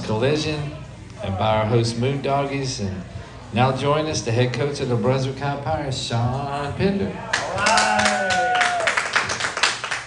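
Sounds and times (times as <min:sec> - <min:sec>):
speech: 0:00.1 - 0:08.1
small crowd clapping and cheering at a high school football game: 0:07.3 - 0:10.0.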